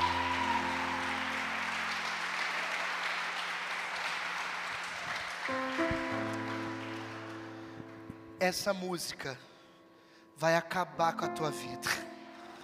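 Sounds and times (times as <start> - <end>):
audience applause: 0.0 - 8.0
speech: 8.4 - 9.5, 10.4 - 12.0.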